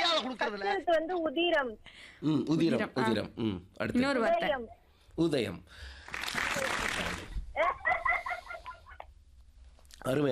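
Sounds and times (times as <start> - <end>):
speech: 0.4 - 7.7, 10.0 - 10.3
applause: 6.0 - 7.4
laughter: 7.6 - 9.1.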